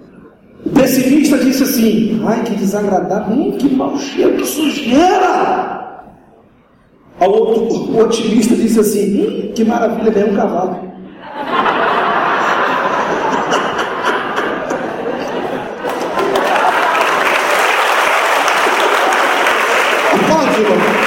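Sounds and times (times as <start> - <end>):
speech: 0.6 - 5.8, 7.2 - 10.9
laughter: 11.0 - 17.7
audience applause: 15.5 - 21.0.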